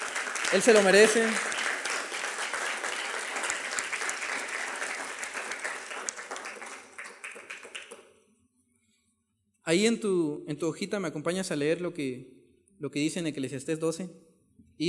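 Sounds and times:
loud audience applause: 0.0s - 8.1s
speech: 0.5s - 1.6s, 9.7s - 14.8s.

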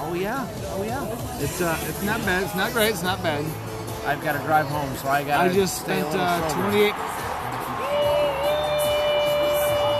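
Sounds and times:
speech: 0.2s - 7.2s
baseball crowd cheering on TV: 6.0s - 9.9s.

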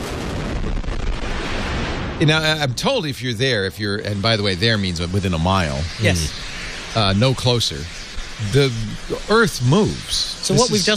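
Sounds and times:
Falcon Heavy rocket engines firing in static test: 0.0s - 10.9s
speech: 2.2s - 10.9s.

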